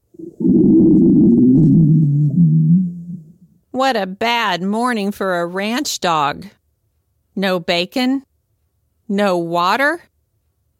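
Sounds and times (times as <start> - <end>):
belly rumbling: 0.2 - 3.5
speech: 3.8 - 6.6, 7.4 - 8.3, 9.1 - 10.1.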